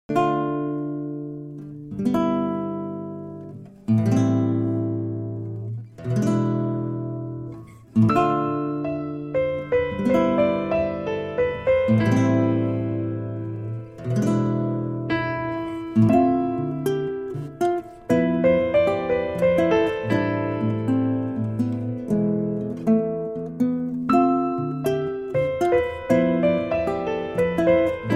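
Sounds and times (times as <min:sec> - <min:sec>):
guitar: 0:00.0 - 0:28.1.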